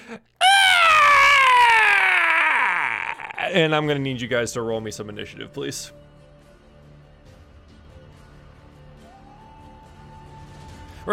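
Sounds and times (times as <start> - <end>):
speech: 0.1 - 0.3, 3.5 - 6.0
creature's shriek: 0.4 - 3.5.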